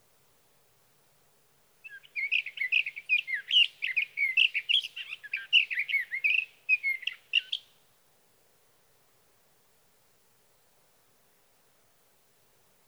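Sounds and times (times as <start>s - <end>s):
sage thrasher warbling song: 1.8s - 7.6s.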